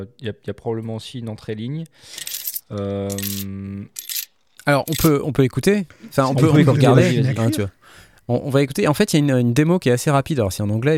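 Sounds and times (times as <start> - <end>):
speech: 0.0 - 4.1, 4.7 - 10.9
coins dropping, tip sound effect: 2.1 - 5.1
laughter: 5.9 - 7.8.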